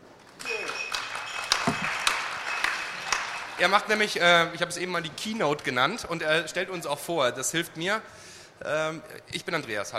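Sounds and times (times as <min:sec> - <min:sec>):
audience applause: 0:00.4 - 0:04.2
speech: 0:03.6 - 0:09.9.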